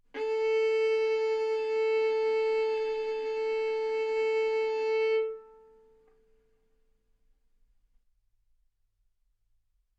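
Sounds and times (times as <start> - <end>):
violin bowed mezzo-forte on the A string, A4 and B4: 0.1 - 6.2.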